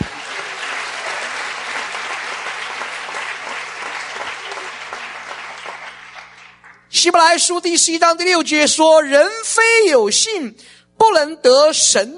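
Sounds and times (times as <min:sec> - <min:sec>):
audience clapping hands: 0:00.0 - 0:06.9
speech: 0:07.0 - 0:12.1.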